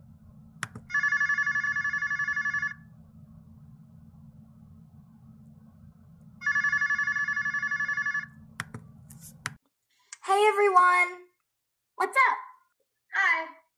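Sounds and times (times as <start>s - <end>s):
low constant hum: 0.0s - 9.4s
outgoing phone call ringing tone: 0.9s - 2.9s, 6.4s - 8.4s
speech: 10.4s - 11.2s.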